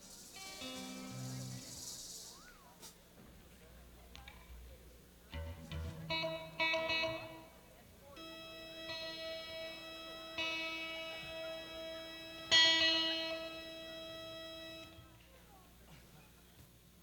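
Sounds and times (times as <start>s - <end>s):
instrument tuning: 0.0s - 2.7s, 5.3s - 15.2s.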